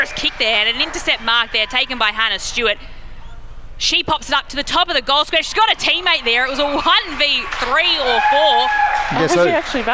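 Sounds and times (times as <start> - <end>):
voices shouting: 0.0 - 2.7, 5.2 - 9.9
crowd cheering at a football match: 0.0 - 2.8, 4.8 - 9.9
speech: 0.1 - 3.0, 3.8 - 9.9.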